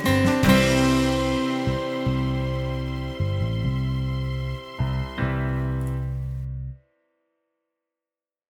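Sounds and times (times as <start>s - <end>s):
slow play-along guitar: 0.0s - 6.8s.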